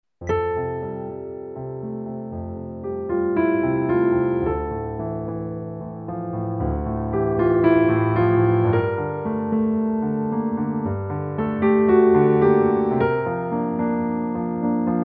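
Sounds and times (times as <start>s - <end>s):
piano: 0.2s - 15.0s.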